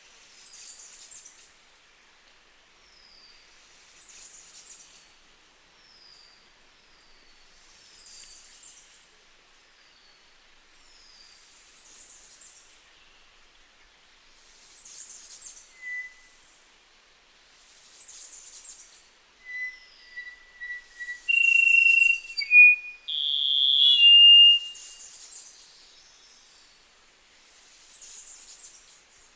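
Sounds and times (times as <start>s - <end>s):
Rufous-throated solitaire singing: 19.4s - 24.8s.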